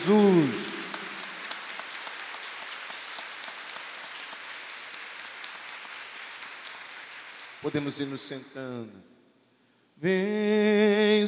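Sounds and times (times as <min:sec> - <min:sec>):
speech: 0:00.0 - 0:00.6, 0:07.6 - 0:09.1, 0:10.0 - 0:11.2
audience applauding in church: 0:00.0 - 0:08.2.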